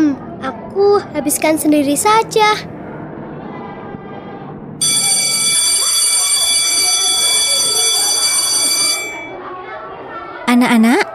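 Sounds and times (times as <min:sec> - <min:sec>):
speech: 0:00.8 - 0:02.8, 0:10.6 - 0:11.1
school bell ringing: 0:04.8 - 0:09.5.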